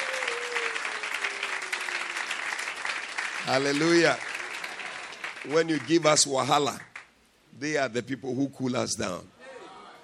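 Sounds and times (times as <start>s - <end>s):
large crowd clapping: 0.0s - 7.1s
speech: 3.4s - 4.3s, 5.4s - 6.9s, 7.6s - 9.4s.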